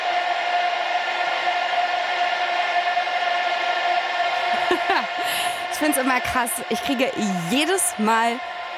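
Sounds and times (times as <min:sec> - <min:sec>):
concert audience singing together: 0:00.0 - 0:06.4
laughter: 0:04.4 - 0:08.2
speech: 0:04.7 - 0:08.7.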